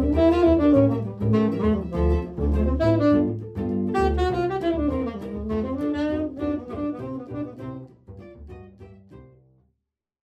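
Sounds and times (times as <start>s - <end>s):
jazz trio playing: 0.0s - 9.3s.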